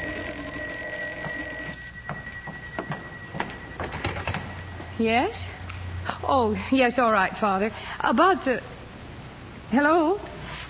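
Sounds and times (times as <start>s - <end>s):
telephone ringing with a metallic bell trill: 0.0s - 5.6s
speech: 5.0s - 8.7s, 9.7s - 10.3s.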